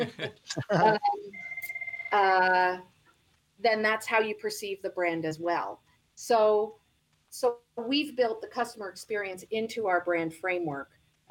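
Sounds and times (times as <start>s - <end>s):
laughter: 0.0s - 1.0s
speech: 0.0s - 1.2s, 2.1s - 2.9s, 3.6s - 11.2s
mobile phone ringing: 0.8s - 2.6s.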